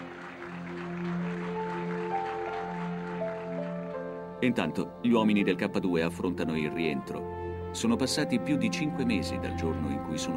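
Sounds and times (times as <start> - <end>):
parliament applauding: 0.0 - 5.0
speech: 4.4 - 10.3.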